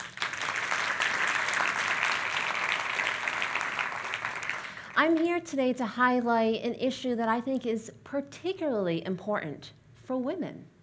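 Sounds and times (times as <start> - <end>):
audience applause: 0.0 - 5.0
speech: 5.0 - 10.7.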